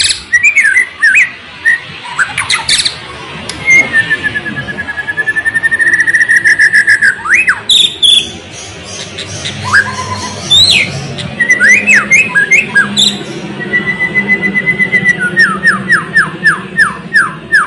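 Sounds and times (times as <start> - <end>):
white-rumped shama song: 0.0 - 17.6.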